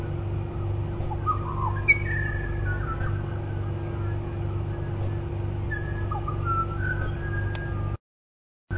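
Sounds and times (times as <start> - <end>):
bird calling in the Australian outback: 1.0 - 7.8.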